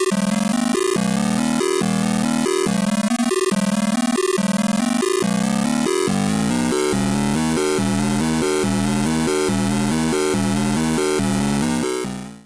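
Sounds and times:
Erica Synths Pico System 3 shape CV FM modulation: 0.2s - 12.4s.

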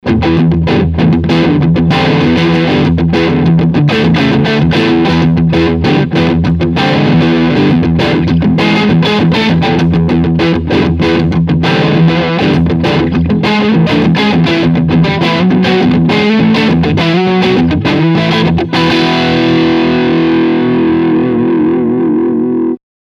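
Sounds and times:
overdrive guitar lick on both humbuckers: 0.0s - 22.8s.

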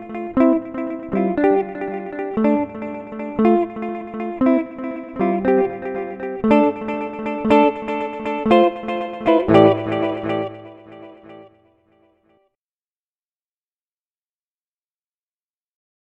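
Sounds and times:
Boss DD 200 delay pedal pattern: 0.0s - 11.5s.

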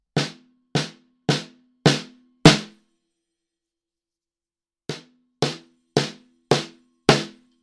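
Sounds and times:
snare drum: 0.2s - 2.7s, 4.9s - 7.4s.

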